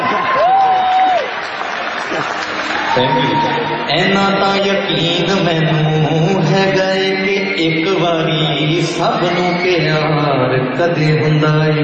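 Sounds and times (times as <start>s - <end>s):
audience applause: 0.0s - 4.4s
speech: 3.0s - 11.8s.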